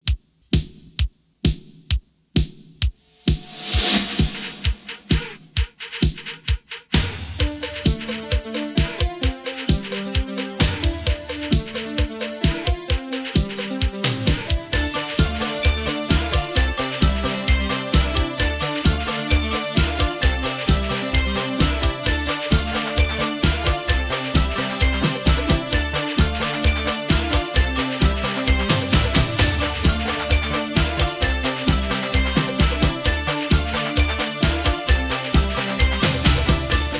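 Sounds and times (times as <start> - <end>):
instrumental music: 0.0 - 36.9.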